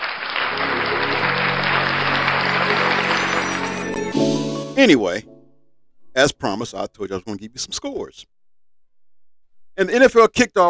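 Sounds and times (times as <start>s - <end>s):
applause sound effect: 0.0s - 4.3s
speech: 4.8s - 5.3s, 6.2s - 8.4s, 9.8s - 10.6s.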